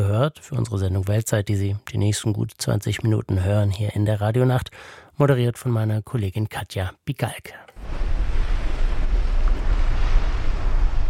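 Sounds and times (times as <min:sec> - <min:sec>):
speech: 0:00.2 - 0:08.2
wind whipping Atlantic waves against the coast of Tierra del Fuego: 0:07.8 - 0:11.0.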